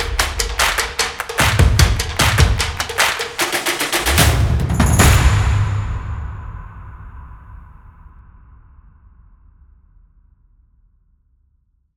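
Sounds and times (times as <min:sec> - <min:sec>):
action drum music: 0:00.0 - 0:07.0.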